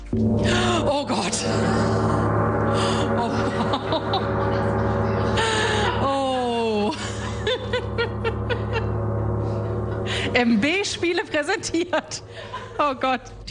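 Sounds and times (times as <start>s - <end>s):
singing bowls: 0.1s - 13.3s.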